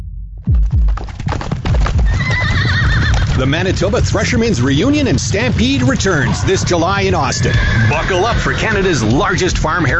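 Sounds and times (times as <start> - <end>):
Clydesdale horse hooves clopping: 0.4 - 9.9
Clydesdale horse whinnying: 1.6 - 4.2, 5.8 - 9.2
speech: 3.4 - 9.9.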